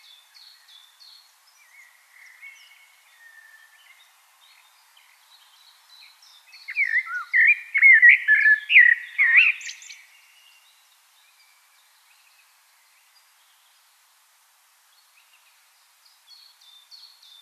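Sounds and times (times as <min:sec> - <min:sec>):
common blackbird song: 0:00.0 - 0:14.0, 0:14.8 - 0:17.4.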